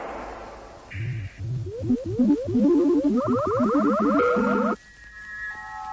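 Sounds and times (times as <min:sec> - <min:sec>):
abruptly spliced electronic tones in a musique concrete tape collage: 0:00.9 - 0:04.8
high beeps: 0:00.9 - 0:04.8
swooping pitched sweeps: 0:00.9 - 0:04.8
wobbling warbles: 0:00.9 - 0:04.8.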